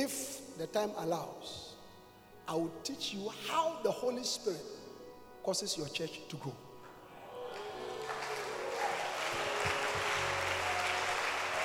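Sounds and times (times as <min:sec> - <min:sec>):
speech: 0:00.0 - 0:01.6, 0:02.5 - 0:04.8, 0:05.4 - 0:06.7
audience clapping hands: 0:07.2 - 0:11.6.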